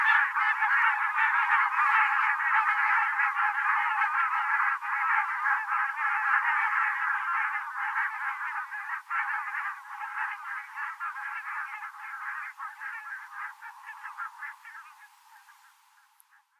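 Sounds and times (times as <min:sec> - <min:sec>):
barnacle goose calling: 0:00.0 - 0:16.5.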